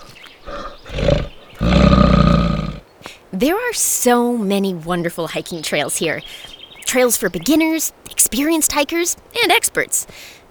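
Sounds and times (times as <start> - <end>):
black bear roaring: 0.4 - 2.8
speech: 3.4 - 10.4.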